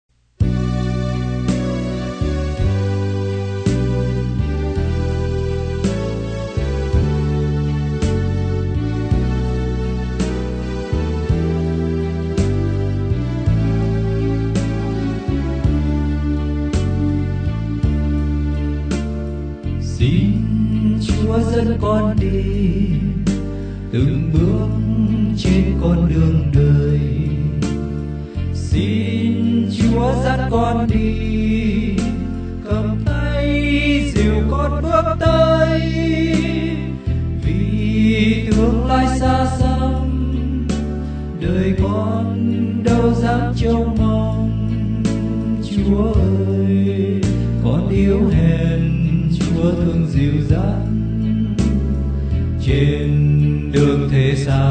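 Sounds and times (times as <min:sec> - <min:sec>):
bass: 0:00.0 - 0:54.6.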